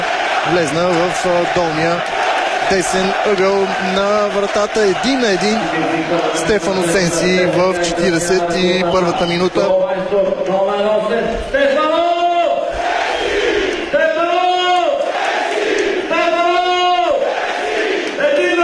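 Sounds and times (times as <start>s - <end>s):
stadium crowd chanting a player's name: 0.0s - 9.7s, 12.5s - 18.6s
speech: 0.5s - 12.2s.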